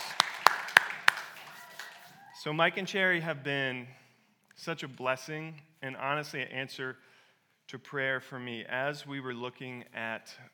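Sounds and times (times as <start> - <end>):
round of applause: 0.0 - 2.5
speech: 2.4 - 4.0, 4.6 - 7.1, 7.7 - 10.5.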